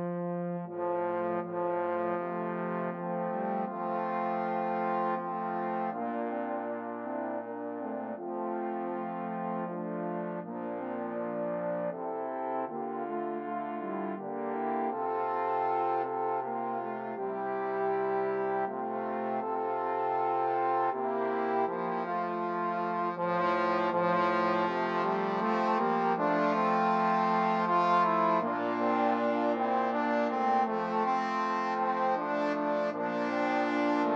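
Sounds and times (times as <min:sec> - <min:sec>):
trombone quartet playing: 0:00.0 - 0:34.1.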